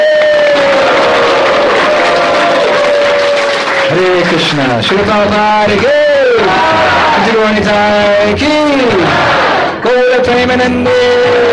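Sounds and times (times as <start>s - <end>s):
audience applause: 0.0s - 7.2s
audience cheering: 0.0s - 9.8s
speech: 4.0s - 11.4s.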